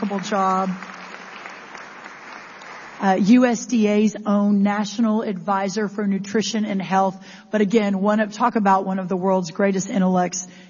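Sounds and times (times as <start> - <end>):
audience applause: 0.0 - 3.0
speech: 0.1 - 1.0, 3.0 - 10.6.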